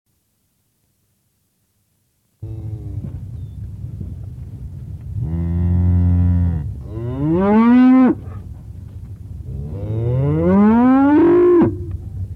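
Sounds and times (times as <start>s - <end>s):
cow giving short clipped moos and a long rising moo: 5.2s - 8.2s, 9.6s - 11.9s.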